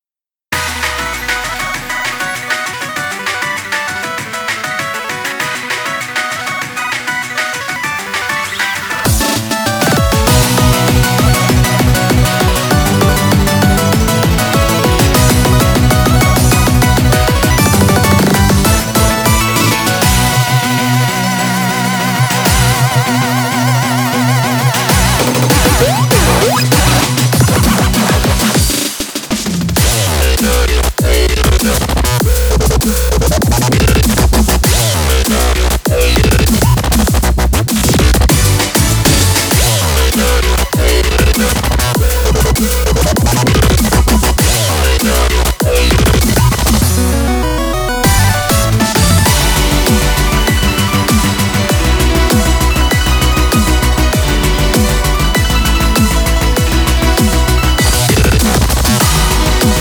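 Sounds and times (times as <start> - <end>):
8-bit music: 0.5 - 28.9, 29.8 - 59.7.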